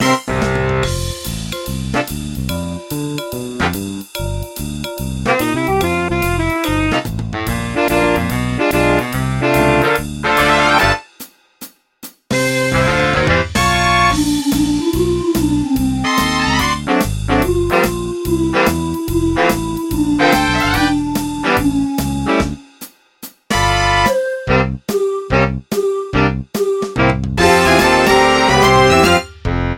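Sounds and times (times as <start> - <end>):
karaoke instrumental music: 0.0 - 11.1, 12.3 - 22.8, 23.5 - 29.7.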